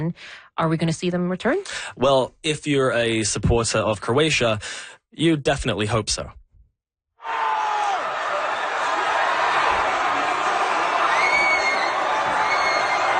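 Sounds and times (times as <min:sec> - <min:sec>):
speech: 0:00.0 - 0:06.4
Croatian fans in Vancouver cheering Croatia beating Brazil at the 2022 World Cup: 0:07.2 - 0:13.1.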